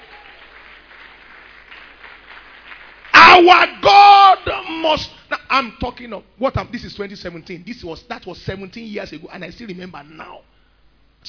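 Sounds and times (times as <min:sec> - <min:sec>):
audience clapping: 0:00.0 - 0:03.8
speech: 0:03.4 - 0:10.5.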